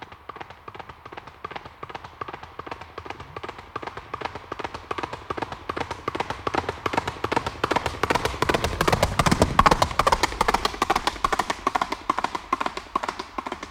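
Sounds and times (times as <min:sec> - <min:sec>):
horse galloping past with hooves clattering on asphalt: 0:00.0 - 0:13.6.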